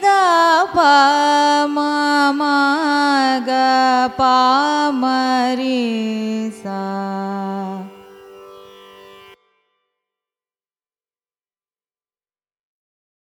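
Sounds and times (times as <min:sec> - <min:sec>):
carnatic music raga ascending and descending scale: 0:00.0 - 0:10.0.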